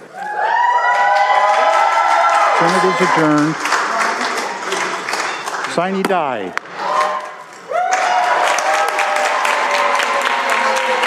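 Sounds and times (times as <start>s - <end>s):
legislators applauding and cheering: 0.0s - 11.0s
whoops and rising shout: 0.1s - 3.4s, 6.8s - 11.0s
speech: 2.6s - 3.8s, 5.8s - 6.6s.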